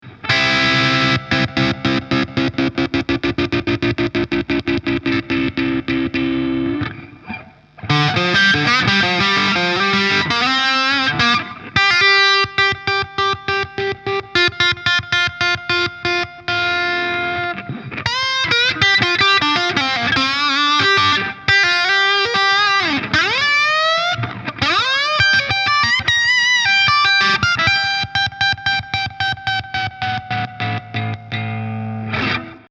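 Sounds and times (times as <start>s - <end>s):
Framus Idolmaker electric guitar distorted with killswitch: 0.0s - 32.6s.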